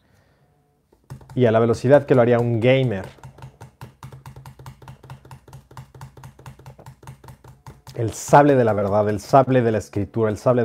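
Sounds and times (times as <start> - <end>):
fast typing on a computer keyboard: 1.0 - 9.4
speech: 1.4 - 3.2, 8.0 - 10.6.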